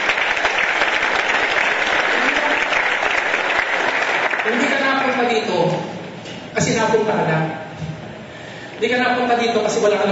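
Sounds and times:
audience applause at a church gathering for people who shared testimonies: 0:00.0 - 0:05.1
speech: 0:05.2 - 0:06.0, 0:06.6 - 0:07.9, 0:08.8 - 0:10.1.

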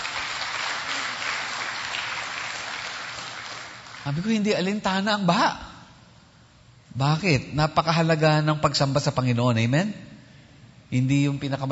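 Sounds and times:
church congregation applauding: 0:00.0 - 0:04.3
speech: 0:04.0 - 0:05.7, 0:07.0 - 0:10.0, 0:10.9 - 0:11.7.

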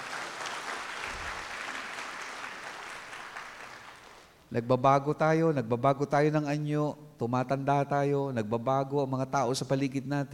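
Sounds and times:
congregation applauding in church: 0:00.0 - 0:04.4
speech: 0:04.5 - 0:10.3.

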